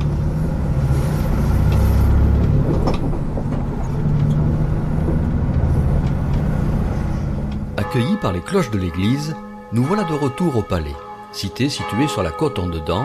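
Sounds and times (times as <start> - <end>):
bus ride: 0.0 - 9.6
speech: 7.9 - 13.0.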